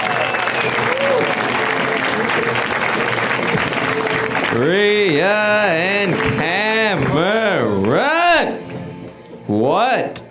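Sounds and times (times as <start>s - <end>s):
audience applause for a comedian at a comedy show in L.A.: 0.0s - 7.2s
speech: 4.6s - 8.1s.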